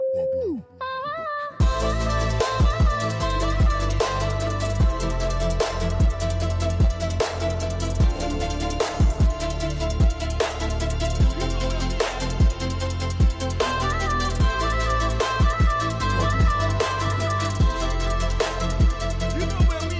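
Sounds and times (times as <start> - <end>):
pop EDM: 1.6 - 19.9.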